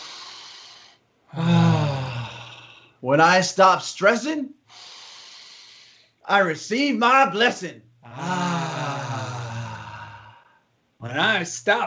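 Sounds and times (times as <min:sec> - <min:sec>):
deep breath taken to clear the mind during meditation: 0:00.0 - 0:03.0, 0:04.7 - 0:06.2, 0:08.1 - 0:10.8
speech: 0:03.0 - 0:04.9, 0:06.3 - 0:08.5, 0:11.0 - 0:11.8.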